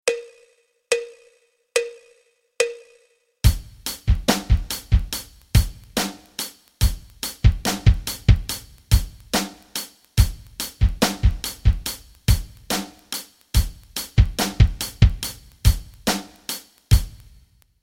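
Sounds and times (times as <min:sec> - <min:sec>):
rock rhythms: 0:03.4 - 0:17.5.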